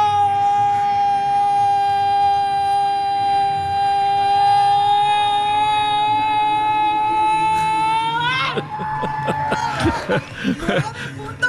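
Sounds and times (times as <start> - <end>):
woman's long sustained yell of goal: 0.0 - 8.6
laughter: 7.4 - 11.4.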